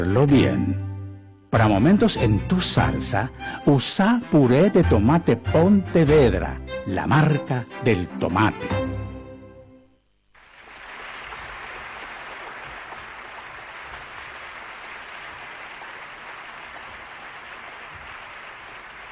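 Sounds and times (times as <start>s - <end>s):
speech: 0.0s - 0.9s, 1.5s - 8.9s
concert audience applause in Basel: 10.4s - 19.1s.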